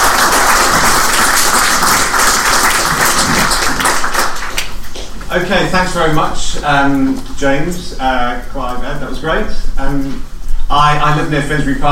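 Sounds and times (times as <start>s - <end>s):
audience applause: 0.0s - 5.1s
speech: 5.4s - 11.9s.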